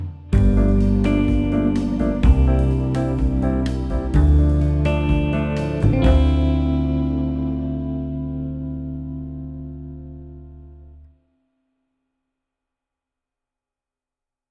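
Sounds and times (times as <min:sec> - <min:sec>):
jazz backing track: 0:00.0 - 0:10.6.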